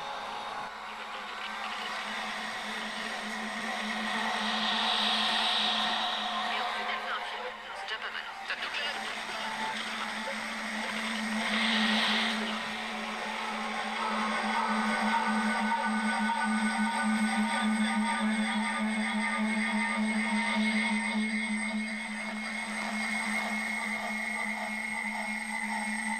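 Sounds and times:
steady low hum: 0:00.0 - 0:17.0
radio echo feedback howl from Radio Campus Paris on 93.9: 0:00.0 - 0:26.1.

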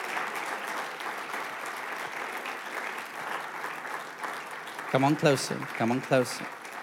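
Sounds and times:
audience clapping: 0:00.0 - 0:06.8
speech: 0:04.9 - 0:06.6.

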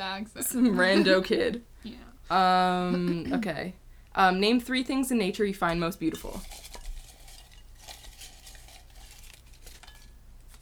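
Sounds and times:
speech: 0:00.2 - 0:06.7
paper crinkling: 0:06.2 - 0:10.6.

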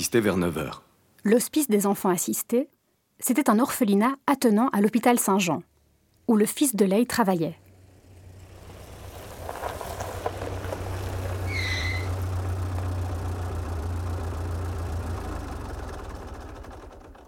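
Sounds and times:
speech: 0:00.0 - 0:05.7, 0:06.3 - 0:07.6
car engine idling: 0:07.6 - 0:17.2.

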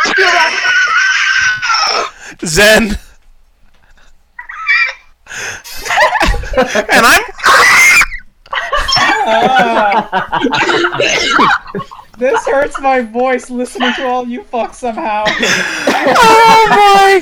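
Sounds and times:
people laughing: 0:00.0 - 0:02.1, 0:03.9 - 0:17.2
people screeching in imitation of raptor dinosaur calls: 0:00.0 - 0:02.2, 0:04.4 - 0:05.0, 0:07.4 - 0:09.8, 0:15.9 - 0:17.2
speech: 0:02.5 - 0:03.0, 0:06.6 - 0:07.4, 0:09.6 - 0:17.2.

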